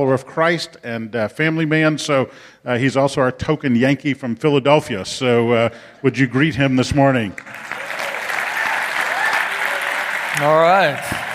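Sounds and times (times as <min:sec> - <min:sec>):
speech: 0:00.0 - 0:07.8, 0:10.4 - 0:11.3
audience applauding: 0:07.4 - 0:11.3
people cheering: 0:07.4 - 0:11.3.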